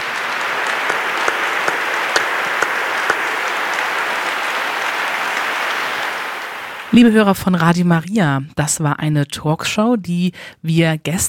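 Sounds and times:
crowd applause: 0:00.0 - 0:07.1
speech: 0:06.9 - 0:11.2.

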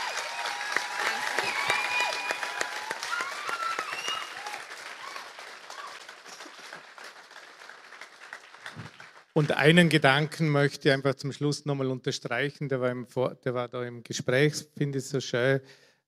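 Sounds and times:
faint voices and cheers: 0:00.0 - 0:06.0
audience applause: 0:00.0 - 0:10.0
speech: 0:09.4 - 0:16.0.

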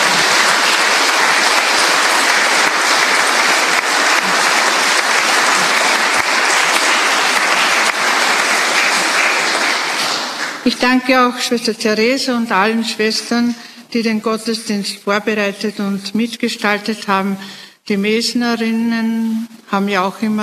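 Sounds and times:
audience applause: 0:00.0 - 0:10.7
speech: 0:10.7 - 0:20.4.

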